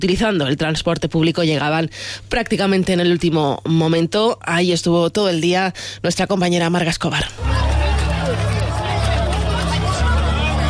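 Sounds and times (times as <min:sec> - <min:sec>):
speech: 0:00.0 - 0:07.8
crowd babble and shouting on Arenal beach at the total solar eclipse: 0:07.4 - 0:10.6.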